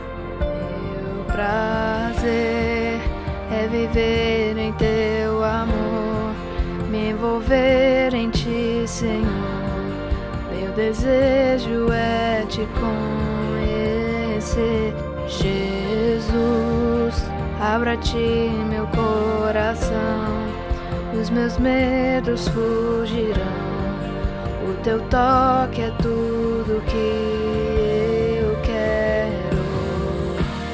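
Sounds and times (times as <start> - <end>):
tenor singing: 0.0 - 30.7.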